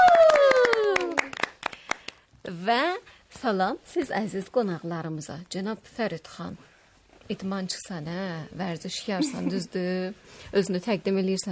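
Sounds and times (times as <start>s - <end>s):
studio guests clapping at a holiday television show: 0.0s - 2.3s
speech: 2.7s - 6.7s, 7.3s - 11.4s.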